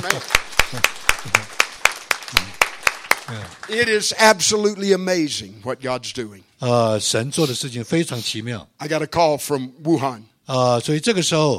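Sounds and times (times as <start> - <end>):
speech: 0.0 - 1.6, 2.3 - 2.5, 3.7 - 11.5
audience clapping: 0.0 - 4.7.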